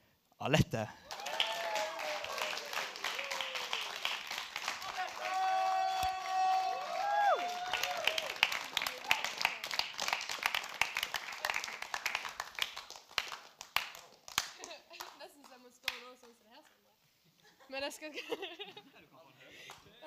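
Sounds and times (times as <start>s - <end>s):
speech: 0.4s - 1.0s, 18.1s - 18.4s
resounding audience applause: 1.0s - 15.2s.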